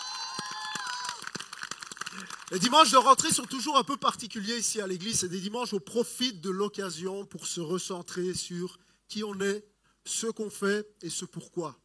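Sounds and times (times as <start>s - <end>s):
whoop or whistle: 0.0s - 1.2s
audience applauding: 0.0s - 3.4s
speech: 2.2s - 11.8s.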